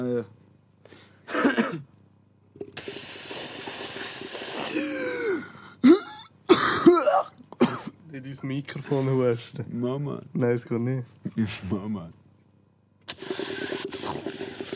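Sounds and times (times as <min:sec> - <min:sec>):
speech: 0:00.0 - 0:01.0, 0:08.3 - 0:12.2
person clearing throat: 0:01.3 - 0:01.9, 0:04.7 - 0:08.0
person coughing: 0:01.3 - 0:01.9, 0:04.6 - 0:08.0.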